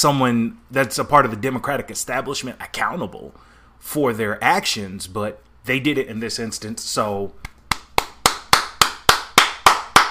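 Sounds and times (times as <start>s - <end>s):
speech: 0.0s - 7.5s
hands clapping: 7.4s - 10.0s.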